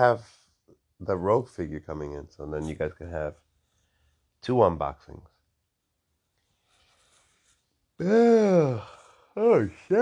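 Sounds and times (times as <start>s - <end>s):
speech: 0.0s - 0.3s, 1.0s - 3.4s, 4.4s - 5.3s, 8.0s - 10.0s
person yawning: 8.0s - 9.2s.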